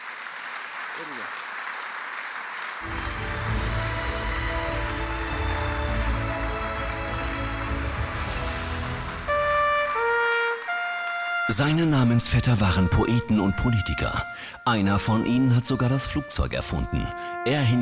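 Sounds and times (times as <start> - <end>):
large audience applause: 0.0 - 12.7
speech: 1.0 - 1.5, 2.8 - 3.1, 11.5 - 17.7.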